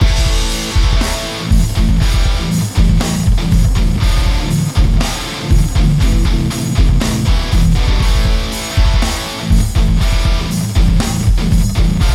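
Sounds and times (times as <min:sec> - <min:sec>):
hardcore music: 0:00.0 - 0:12.1.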